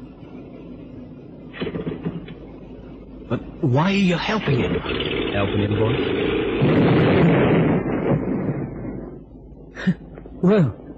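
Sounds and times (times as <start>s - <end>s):
speech: 3.3s - 7.0s, 9.8s - 10.8s
boat exploding: 4.5s - 9.2s.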